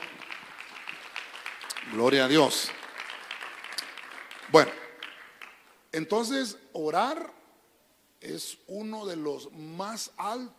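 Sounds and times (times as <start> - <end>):
audience clapping loudly: 0.0 - 5.8
speech: 1.8 - 2.8, 4.5 - 4.8, 6.0 - 7.4, 8.2 - 10.5.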